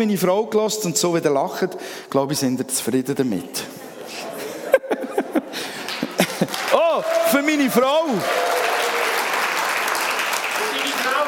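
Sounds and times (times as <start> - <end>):
speech: 0.0 - 4.3, 6.8 - 8.6
laughter: 3.7 - 7.0
audience applause: 5.5 - 11.2.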